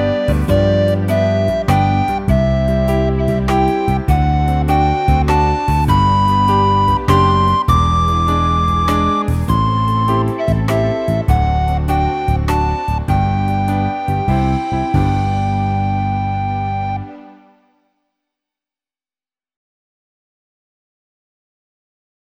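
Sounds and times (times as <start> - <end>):
waltz music: 0.0 - 17.6.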